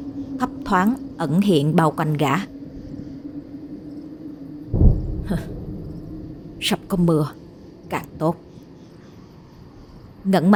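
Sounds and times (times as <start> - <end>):
speech: 0.4 - 2.5, 5.3 - 5.6, 6.6 - 8.4, 10.2 - 10.5
rolling thunder: 2.5 - 7.9.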